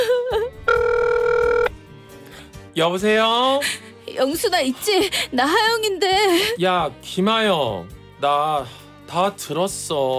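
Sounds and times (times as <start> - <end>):
telephone ringing tone: 0.7 - 1.8
speech: 2.8 - 10.1.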